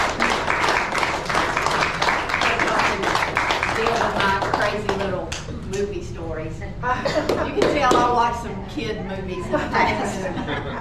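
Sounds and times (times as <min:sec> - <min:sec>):
audience hand clapping: 0:00.0 - 0:05.5
laughter: 0:06.8 - 0:08.1, 0:09.3 - 0:10.7
speech: 0:07.6 - 0:10.7.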